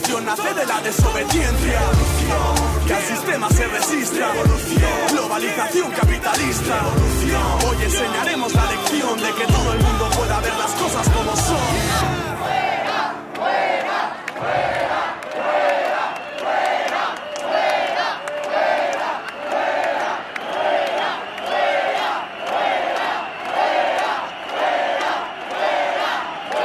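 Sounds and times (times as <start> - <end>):
speech: 0.2 - 12.8
protest crowd shouting: 8.0 - 26.6.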